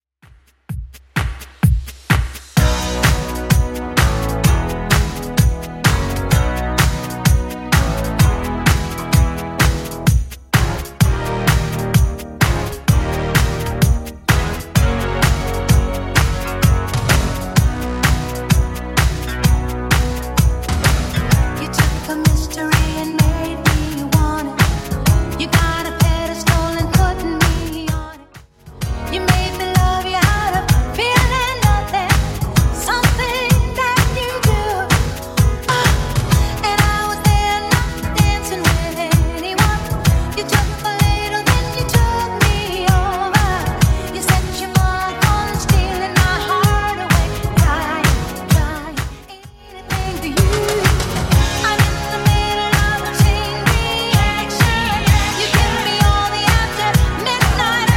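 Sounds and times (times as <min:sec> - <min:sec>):
80s Redrum drum machine beat: 0:00.2 - 0:57.9.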